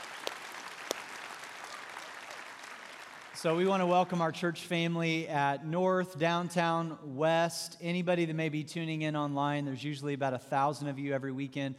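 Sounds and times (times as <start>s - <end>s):
audience at a church service applauding: 0.0s - 4.1s
speech: 3.4s - 11.7s.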